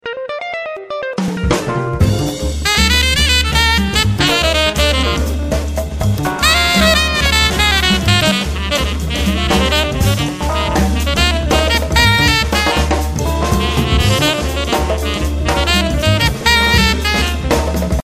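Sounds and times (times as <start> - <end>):
jazz bar ambience: 0.8 - 18.0.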